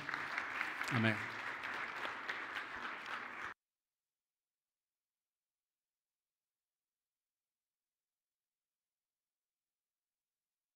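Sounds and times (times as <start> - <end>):
audience applause: 0.0 - 3.6
speech: 0.9 - 1.4.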